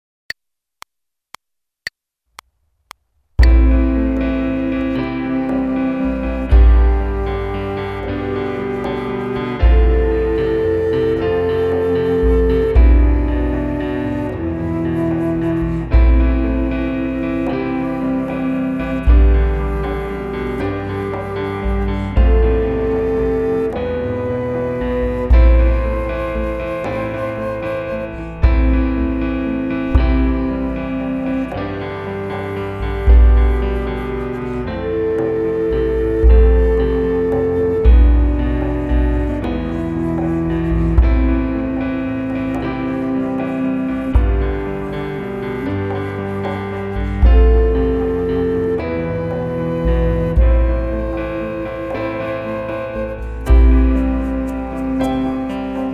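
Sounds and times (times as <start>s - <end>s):
flute playing fourth voice of a folk tune: 3.4s - 55.9s.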